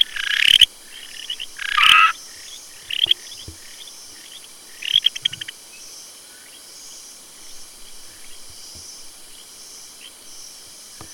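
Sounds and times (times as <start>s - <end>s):
frog calls: 0.0s - 5.6s.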